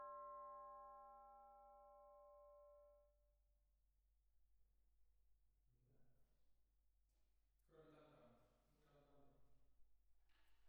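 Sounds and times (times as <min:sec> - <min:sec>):
percussion: 0:00.0 - 0:03.0.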